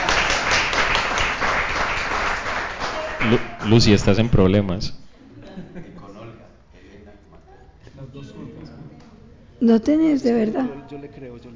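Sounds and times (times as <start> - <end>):
audience applause: 0.0 - 4.1
speech: 3.2 - 5.0, 9.6 - 11.5
laughter: 5.3 - 6.4.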